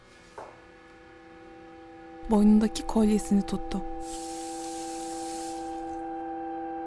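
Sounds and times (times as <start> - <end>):
speech: 2.3 - 4.4
water running in a bathroom sink: 4.0 - 5.9.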